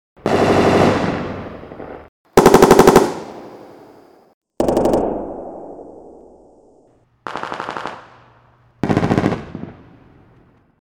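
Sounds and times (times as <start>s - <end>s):
machine gun firing: 0.2s - 1.4s, 2.4s - 3.5s, 4.6s - 5.7s, 7.2s - 8.2s, 8.8s - 9.7s.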